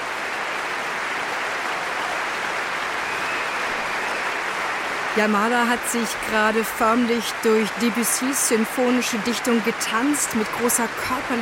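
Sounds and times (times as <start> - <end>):
concert audience cheering: 0.0 - 11.4
concert audience whistling: 2.8 - 5.1
speech: 5.2 - 11.4.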